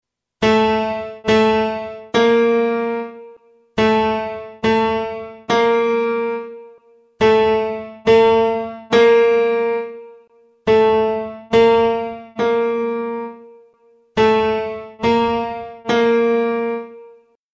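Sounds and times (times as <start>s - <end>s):
piano: 0.4s - 17.4s.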